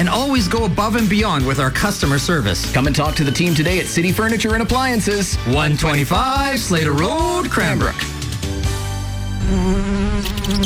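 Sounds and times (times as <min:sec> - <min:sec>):
speech: 0:00.2 - 0:08.1, 0:09.5 - 0:10.6
bugs buzzing in a pest control advert: 0:09.3 - 0:10.6.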